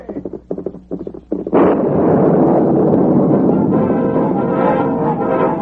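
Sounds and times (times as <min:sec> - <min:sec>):
explosion: 0:01.5 - 0:05.5.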